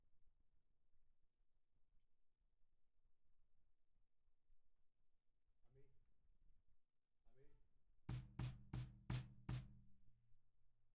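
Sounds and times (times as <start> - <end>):
snare drum recorded from the bottom: 8.1 - 9.8.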